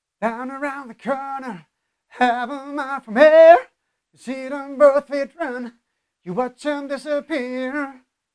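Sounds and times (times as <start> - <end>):
person singing: 0.2 - 8.1.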